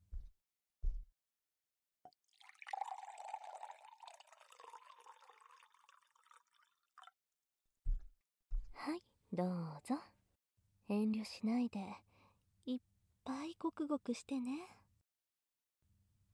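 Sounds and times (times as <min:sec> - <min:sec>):
drink being poured into a glass: 0:02.3 - 0:07.1
speech: 0:08.8 - 0:10.2, 0:10.9 - 0:12.1, 0:12.7 - 0:14.8.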